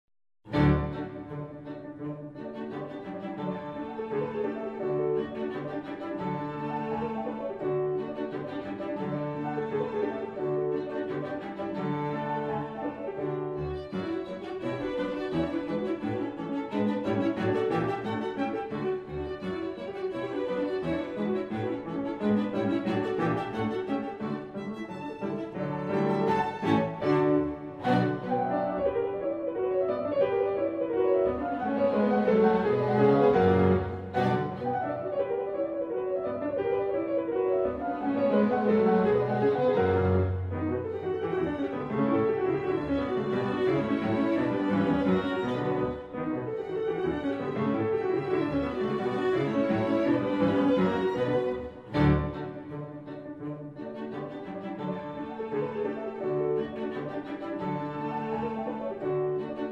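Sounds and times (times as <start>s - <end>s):
piano trio: 0.4s - 59.7s.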